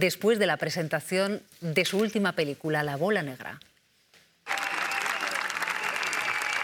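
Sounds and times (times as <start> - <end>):
speech: 0.0 - 3.7
standing ovation applause for los Javis at Cannes film festival: 4.4 - 6.6.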